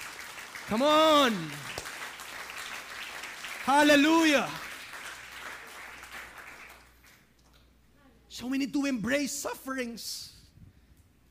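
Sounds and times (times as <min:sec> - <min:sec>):
church congregation applauding during a sermon: 0:00.0 - 0:07.3
speech: 0:00.7 - 0:01.7, 0:03.7 - 0:04.6, 0:08.4 - 0:10.4.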